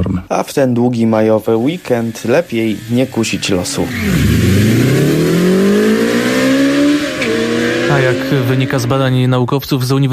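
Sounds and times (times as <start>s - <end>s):
speech: 0.0s - 5.2s, 8.0s - 10.1s
loud modified tuned car engine revving hard: 1.8s - 9.3s.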